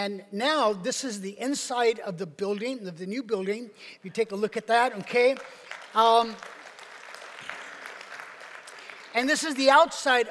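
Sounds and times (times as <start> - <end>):
speech: 0.0 - 6.6, 9.2 - 10.2
audience applauding: 5.1 - 10.2.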